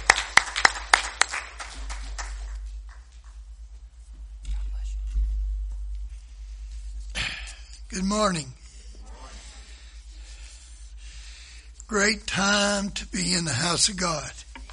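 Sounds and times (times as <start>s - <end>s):
audience applause: 0.0s - 3.4s
low steady hum: 0.0s - 14.7s
speech: 8.0s - 8.6s, 11.9s - 14.5s.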